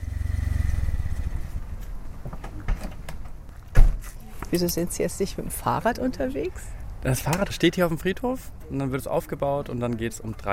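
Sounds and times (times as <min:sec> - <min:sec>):
car engine rumbling, approaching on a sandy path: 0:00.0 - 0:02.2
speech: 0:04.5 - 0:10.5.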